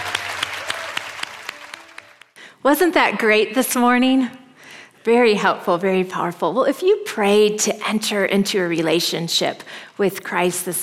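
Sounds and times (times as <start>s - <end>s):
church congregation applauding in celebration of new believers: 0.0s - 2.4s
speech: 2.6s - 4.4s, 5.0s - 10.8s.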